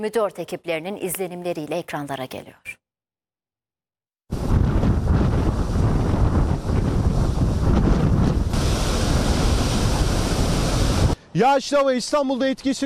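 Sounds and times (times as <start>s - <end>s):
speech: 0.0s - 2.8s, 11.4s - 12.8s
giant waves along the Istanbul shore: 4.3s - 11.2s
strong wind blowing at about 70 km/h on the Istanbul shore: 4.3s - 11.2s.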